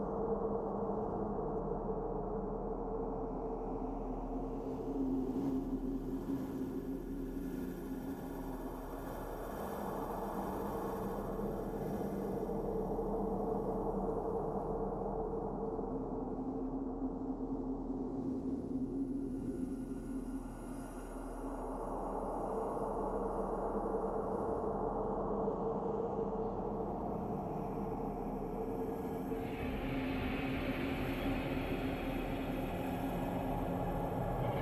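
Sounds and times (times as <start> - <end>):
dragon barrow ambience loop: 0.0 - 34.6.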